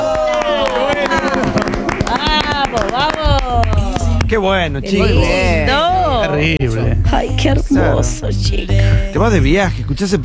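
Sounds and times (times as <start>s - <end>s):
applause: 0.0s - 4.4s
speech: 4.3s - 5.5s, 6.2s - 10.2s.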